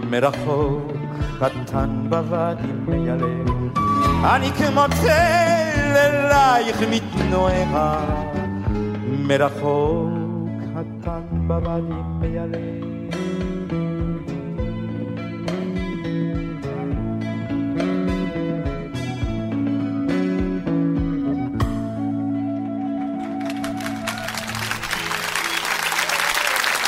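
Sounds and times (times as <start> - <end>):
song with melodic instruments: 0.0 - 26.2
speech: 0.1 - 8.4, 9.1 - 10.2, 10.8 - 12.9
audience applause: 23.2 - 26.8.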